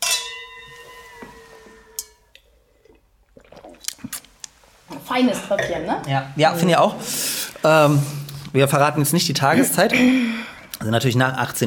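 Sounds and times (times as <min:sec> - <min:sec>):
glasses clinking in a toast: 0:00.0 - 0:02.4
speech: 0:05.1 - 0:11.6.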